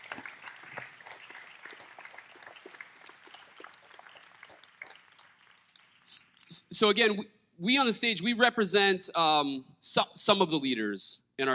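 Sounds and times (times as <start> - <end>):
audience applause: 0.0 - 6.6
speech: 6.8 - 11.5.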